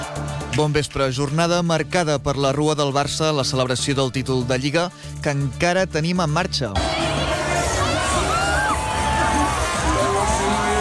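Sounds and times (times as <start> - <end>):
speech: 0.6 - 7.0
football fans cheering in street: 6.8 - 10.7
shouting voices: 6.8 - 10.7.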